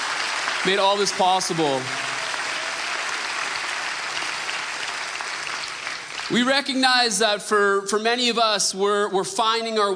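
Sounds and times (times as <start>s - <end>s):
applause: 0.0s - 6.8s
speech: 0.6s - 2.0s, 6.3s - 9.9s.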